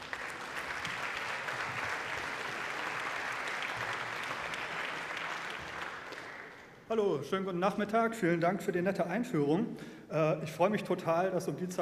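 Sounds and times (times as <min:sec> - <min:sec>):
audience applause: 0:00.0 - 0:06.8
speech: 0:06.9 - 0:11.8.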